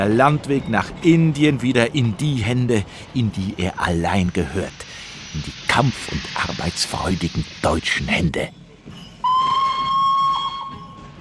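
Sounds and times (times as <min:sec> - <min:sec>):
speech: 0:00.0 - 0:08.6
escaping steam hissing: 0:02.2 - 0:08.5
steam locomotive whistle: 0:09.2 - 0:11.1.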